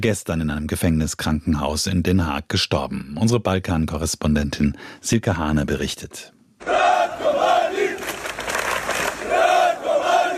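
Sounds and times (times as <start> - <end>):
speech: 0.0 - 7.4
crowd chanting in the street: 6.6 - 10.3.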